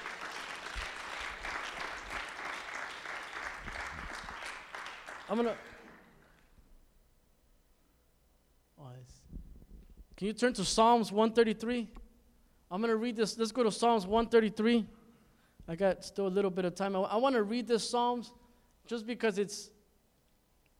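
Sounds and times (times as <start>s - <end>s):
applause: 0.0s - 6.6s
speech: 5.3s - 5.7s, 10.2s - 12.0s, 12.7s - 15.0s, 15.7s - 19.8s.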